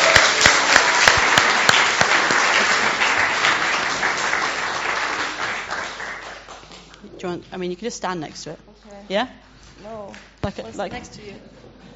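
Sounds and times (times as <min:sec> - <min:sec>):
audience applause: 0:00.0 - 0:07.0
speech: 0:07.2 - 0:11.6.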